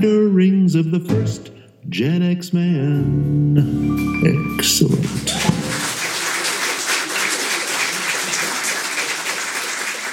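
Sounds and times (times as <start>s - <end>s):
speech: 0.0s - 5.6s
canned audience applause: 4.8s - 10.1s.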